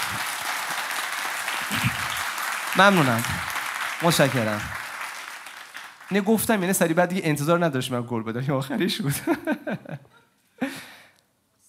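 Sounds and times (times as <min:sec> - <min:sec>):
audience applause: 0:00.0 - 0:07.0
speech: 0:02.8 - 0:03.4, 0:04.0 - 0:04.8, 0:06.1 - 0:10.1.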